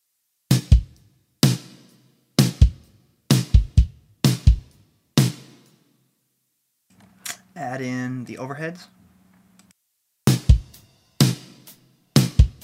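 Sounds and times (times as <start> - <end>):
mixed kick and snare drums: 0.5 - 5.7, 10.3 - 12.6
speech: 7.6 - 9.0.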